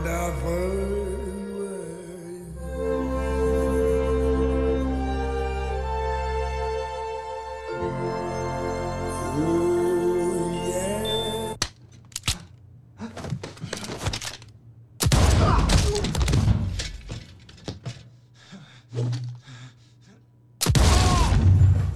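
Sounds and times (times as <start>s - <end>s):
tonal film music: 0.0s - 11.6s
shotgun blasts in a film scene: 15.0s - 16.8s, 20.6s - 21.9s
thuds: 15.0s - 18.1s, 20.7s - 21.9s
loud dense burst of gunfire in a film scene: 20.6s - 21.9s.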